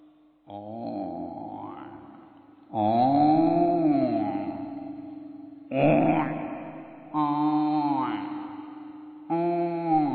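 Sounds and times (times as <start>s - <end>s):
speech: 0.5s - 0.8s, 2.7s - 3.0s
person imitating a buffalo's call: 0.5s - 2.0s, 2.7s - 4.7s, 5.7s - 6.5s, 7.1s - 8.5s, 9.3s - 10.1s.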